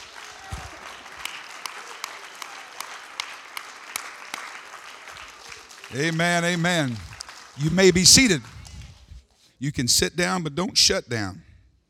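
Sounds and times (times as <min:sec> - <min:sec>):
audience clapping hands: 0:00.0 - 0:09.2
speech: 0:05.9 - 0:08.6, 0:09.6 - 0:11.5.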